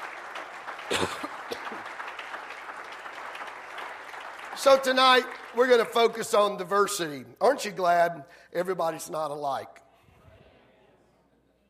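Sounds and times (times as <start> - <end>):
audience hand clapping: 0.0 - 6.8
speech: 0.9 - 1.7, 4.6 - 9.8.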